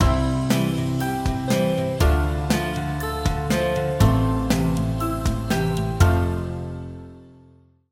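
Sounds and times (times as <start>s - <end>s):
acoustic music: 0.0s - 7.7s.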